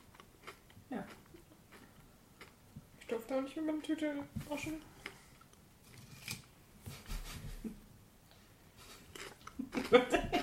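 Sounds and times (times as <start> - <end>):
crunchy snack being chewed: 0.1 - 2.6, 8.9 - 10.0
speech: 3.3 - 5.0.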